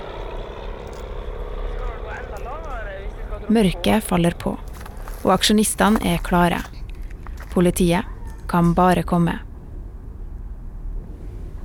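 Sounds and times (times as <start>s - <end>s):
small airplane droning overhead through the valley: 0.0s - 11.6s
speech: 3.5s - 6.7s, 7.6s - 9.4s.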